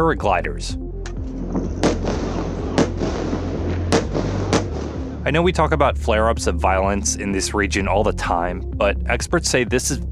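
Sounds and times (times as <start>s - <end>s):
speech: 0.0s - 0.8s, 5.2s - 10.0s
rocket fire across Israel: 1.3s - 5.3s
explosions across Israel: 1.3s - 5.6s.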